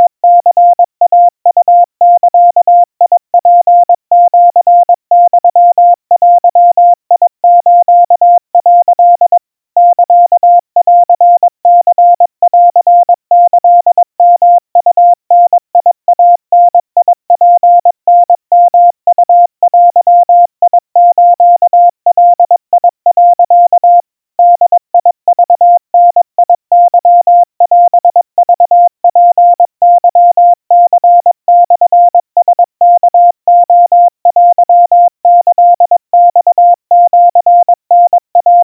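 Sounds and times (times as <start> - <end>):
crisp 700 Hz Morse code tones at 80 cpm: 0.0 - 38.6.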